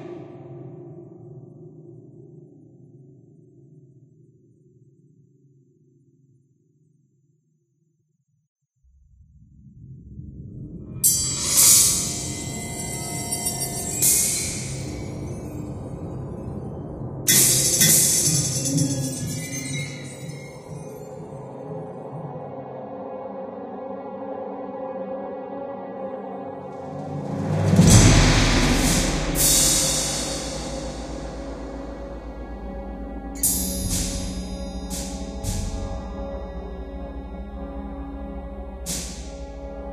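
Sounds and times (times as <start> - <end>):
ambience: 9.0 - 39.9.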